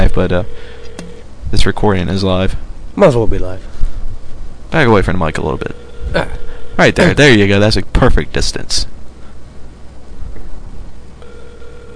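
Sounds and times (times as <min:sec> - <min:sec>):
phone ringing on a call: 0:00.0 - 0:01.2, 0:05.2 - 0:07.2, 0:11.2 - 0:11.9
speech: 0:00.2 - 0:00.6, 0:01.5 - 0:03.7, 0:04.7 - 0:09.0.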